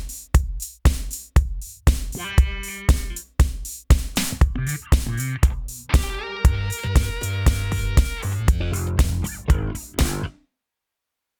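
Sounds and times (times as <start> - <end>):
funk music: 1.8 - 10.3.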